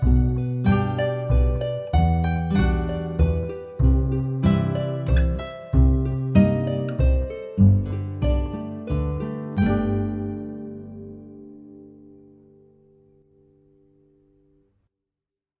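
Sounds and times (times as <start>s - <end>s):
instrumental backing track without melody: 0.0s - 11.5s.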